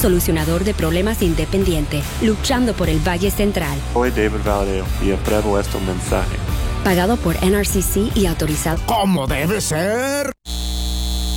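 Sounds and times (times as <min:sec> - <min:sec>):
speech: 0:00.0 - 0:10.6
data center hum: 0:10.5 - 0:11.3.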